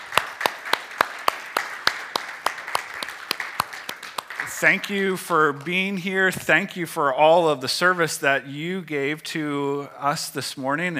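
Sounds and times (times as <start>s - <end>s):
audience applause: 0.0s - 5.6s
speech: 4.5s - 10.9s.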